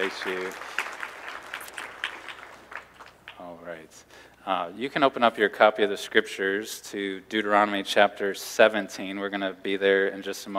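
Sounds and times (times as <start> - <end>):
speech: 0.0 - 0.7, 3.4 - 10.5
audience applause: 0.0 - 3.4.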